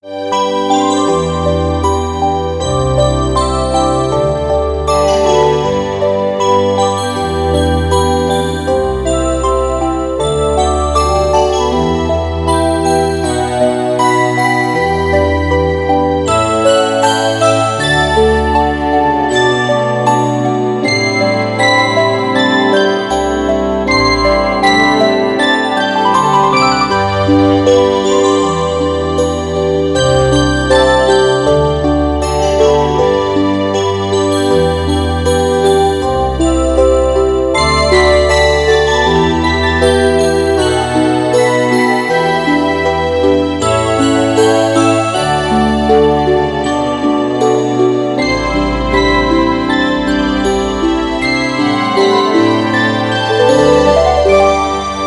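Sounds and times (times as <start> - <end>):
melody: 0.0 - 55.0.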